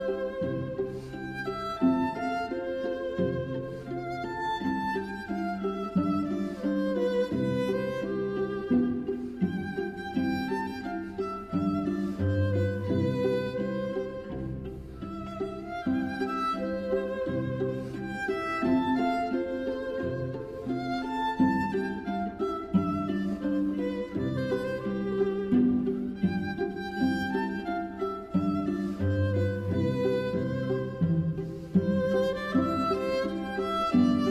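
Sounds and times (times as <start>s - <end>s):
string quartet in F major: 0.0s - 34.2s.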